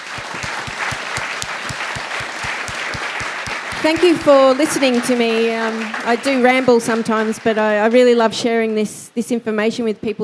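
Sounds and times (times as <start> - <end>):
round of applause: 0.0 - 7.9
speech: 3.8 - 10.2.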